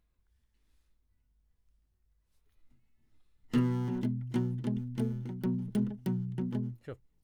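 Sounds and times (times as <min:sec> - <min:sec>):
classical guitar: 0:03.5 - 0:06.9.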